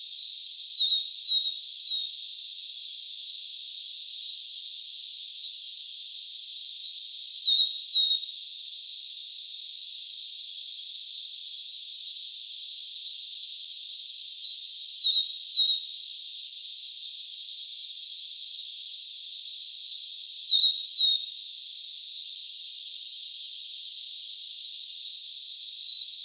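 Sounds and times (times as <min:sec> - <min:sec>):
steady hiss: 0:00.0 - 0:26.2
blue-and-white flycatcher whistles: 0:00.2 - 0:02.1, 0:06.9 - 0:08.2, 0:14.5 - 0:15.8, 0:19.9 - 0:21.2, 0:24.9 - 0:26.2.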